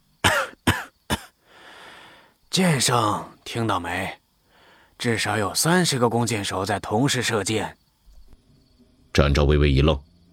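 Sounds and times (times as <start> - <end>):
person coughing: 0.2 - 1.4
speech: 2.6 - 4.2, 5.0 - 7.8, 9.2 - 10.1.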